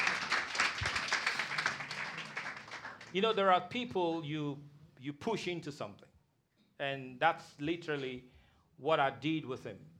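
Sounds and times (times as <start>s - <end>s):
audience clapping hands: 0.0s - 3.4s
speech: 3.1s - 6.1s, 6.8s - 9.9s.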